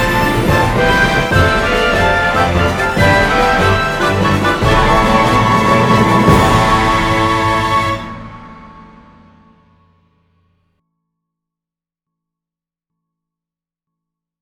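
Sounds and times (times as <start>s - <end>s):
musical accompaniment: 0.0s - 9.9s.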